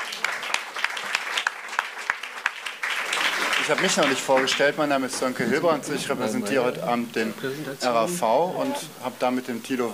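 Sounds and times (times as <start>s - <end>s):
audience applause: 0.0s - 5.4s
speech: 3.7s - 9.9s.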